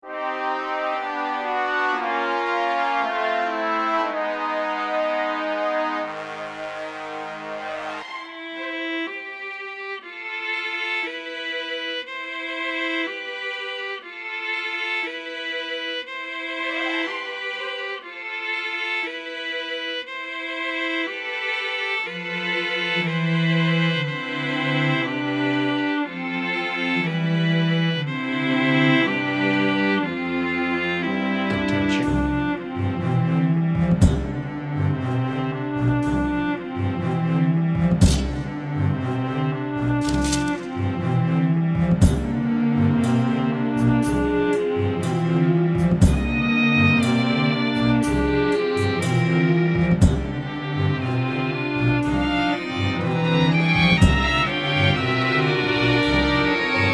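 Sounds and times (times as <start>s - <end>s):
experimental orchestral music: 0.0s - 56.9s.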